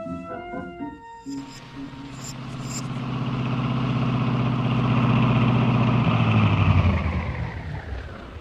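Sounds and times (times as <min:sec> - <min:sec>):
car engine idling as the car stops on a lonely road out of gas: 0:01.7 - 0:08.3.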